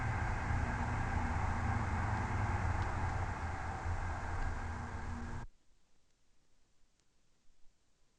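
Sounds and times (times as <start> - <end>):
distant TGV train passing: 0.0 - 5.5.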